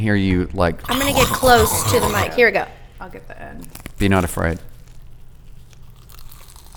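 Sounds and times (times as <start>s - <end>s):
speech: 0.0s - 4.7s
big bite into a homemade croissant: 0.9s - 2.4s, 3.6s - 6.7s.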